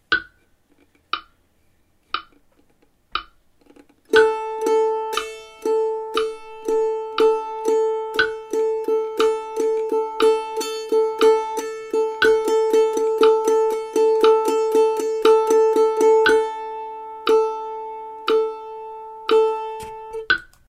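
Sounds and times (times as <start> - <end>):
rhythm: 4.1 - 20.6.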